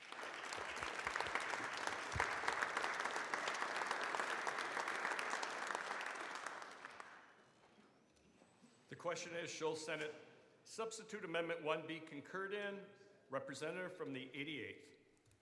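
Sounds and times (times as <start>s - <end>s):
applause in a legislative chamber floor session welcoming broadcasters: 0.0s - 7.4s
speech: 8.9s - 15.0s.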